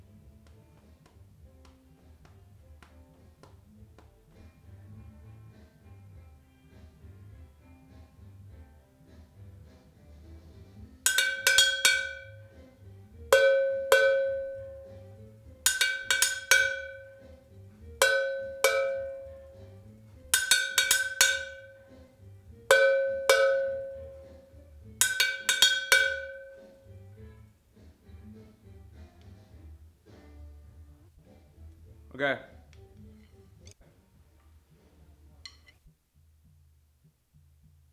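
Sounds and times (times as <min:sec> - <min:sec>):
cowbell: 0:11.1 - 0:12.7, 0:13.3 - 0:22.0, 0:22.7 - 0:26.9.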